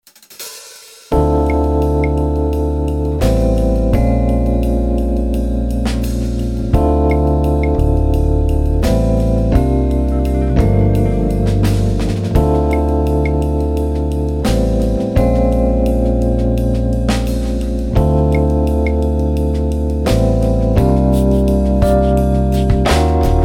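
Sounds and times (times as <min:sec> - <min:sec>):
instrumental music: 0:00.1 - 0:23.4.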